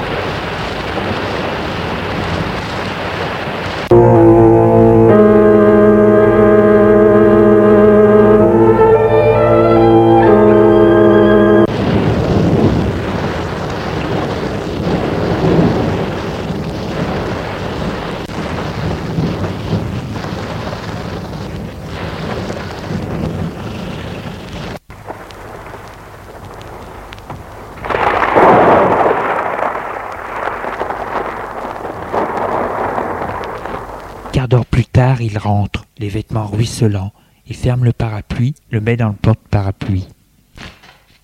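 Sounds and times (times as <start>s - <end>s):
thunder: 0.0s - 5.9s, 9.3s - 34.4s
heavy rainstorm: 0.0s - 34.4s
speech: 35.3s - 40.2s.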